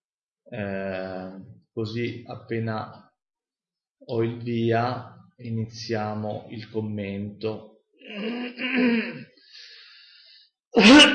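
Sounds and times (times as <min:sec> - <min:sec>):
speech: 0:00.5 - 0:03.0, 0:04.0 - 0:09.3, 0:10.8 - 0:11.1
person coughing: 0:08.1 - 0:09.3, 0:10.8 - 0:11.1.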